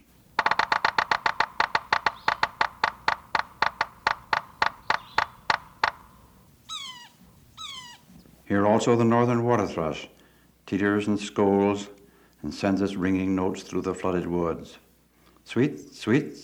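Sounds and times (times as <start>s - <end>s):
yellow-bellied sapsucker drumming: 0.0s - 6.5s
speech: 8.5s - 14.8s, 15.5s - 16.4s.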